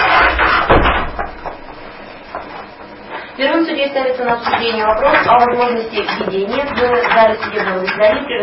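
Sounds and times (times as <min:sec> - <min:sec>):
door pushed shut with a heavy thud: 0:00.1 - 0:01.7
speech: 0:03.7 - 0:08.4.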